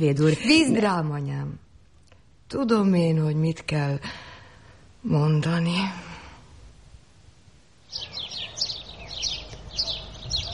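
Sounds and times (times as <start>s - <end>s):
speech: 0.0s - 1.6s, 2.5s - 4.3s, 5.0s - 6.1s
quiet hum: 0.0s - 10.5s
sparrows chirping: 7.8s - 10.5s.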